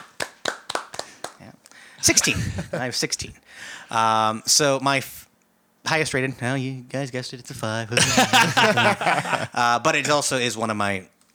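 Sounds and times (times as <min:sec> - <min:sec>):
hands clapping: 0:00.0 - 0:02.3
speech: 0:02.0 - 0:05.2, 0:05.9 - 0:11.1
laughter: 0:02.1 - 0:03.0, 0:08.0 - 0:10.2.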